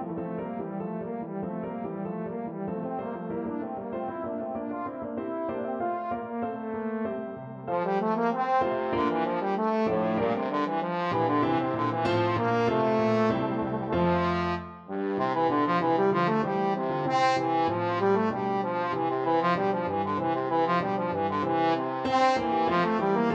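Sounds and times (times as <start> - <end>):
trombone sonata: 0.0 - 23.3.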